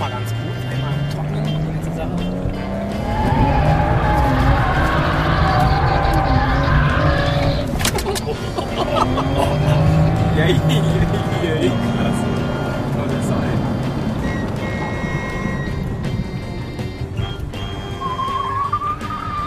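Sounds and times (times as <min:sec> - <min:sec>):
Mercedes car engine revving while driven hard: 0:00.0 - 0:19.4
rough road or tire noise: 0:00.0 - 0:19.4
laughter: 0:07.8 - 0:12.5.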